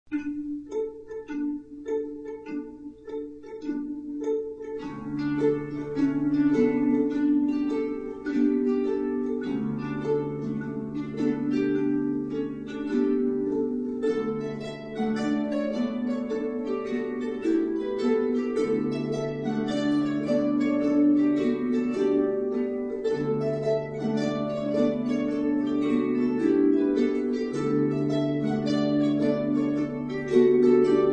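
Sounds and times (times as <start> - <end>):
harps playing a gavotte: 0.1 - 31.1.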